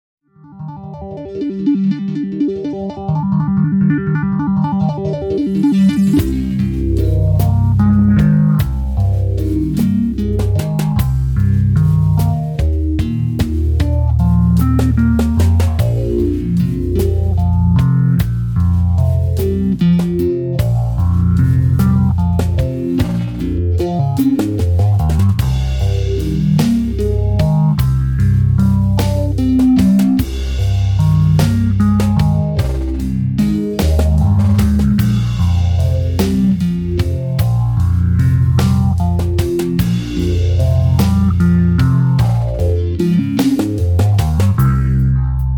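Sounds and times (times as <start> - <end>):
bass: 1.4 - 45.5.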